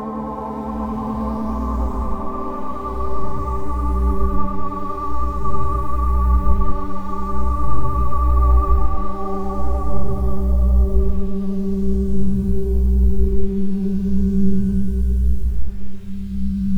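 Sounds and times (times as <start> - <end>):
background music theme: 0.0 - 16.6.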